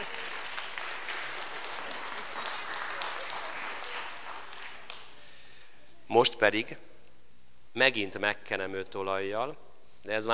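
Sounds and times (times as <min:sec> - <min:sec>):
audience applauding a newly baptized child: 0:00.0 - 0:05.2
speech: 0:06.1 - 0:06.9, 0:07.8 - 0:10.3.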